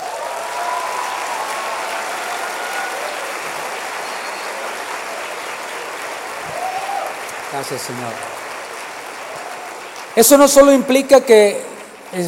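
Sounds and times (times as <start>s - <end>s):
audience applauding: 0.0s - 12.2s
speech: 7.5s - 8.4s, 10.2s - 12.2s.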